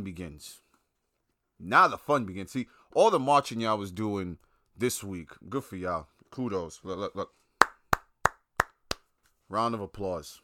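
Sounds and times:
speech: 0.0s - 0.6s, 1.6s - 7.4s, 9.5s - 10.4s
single person hand claps: 7.6s - 9.1s.

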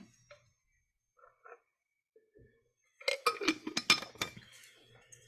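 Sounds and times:
glass clinking: 3.0s - 4.5s.

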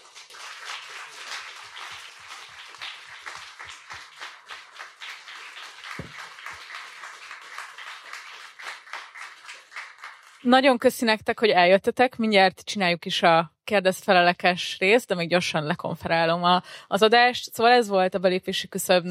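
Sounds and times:
audience applause for the guests: 0.0s - 10.5s
speech: 10.4s - 19.0s.

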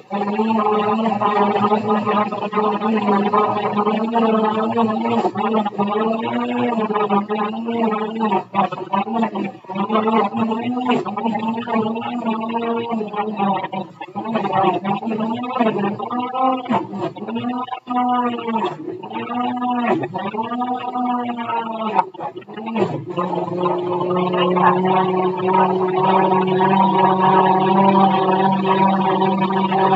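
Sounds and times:
blender whirring through chunks of pumpkin: 0.0s - 29.9s.

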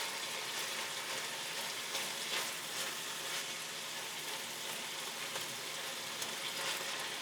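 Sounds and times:
onions and beef frying in a pan: 0.0s - 7.2s.

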